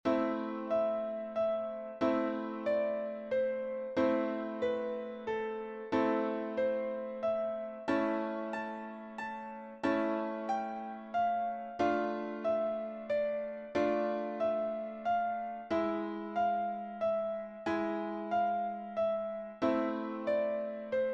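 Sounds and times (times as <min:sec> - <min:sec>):
piano: 0:00.0 - 0:21.1.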